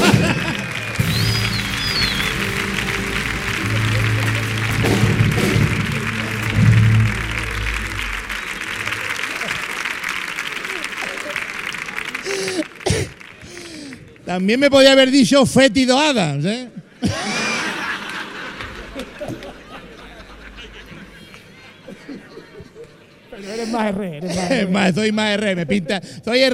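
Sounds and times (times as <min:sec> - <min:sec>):
laughter: 0:00.0 - 0:13.7, 0:16.9 - 0:24.9
audience applause: 0:00.0 - 0:14.3, 0:17.1 - 0:22.5
speech: 0:14.4 - 0:16.8, 0:23.8 - 0:26.5.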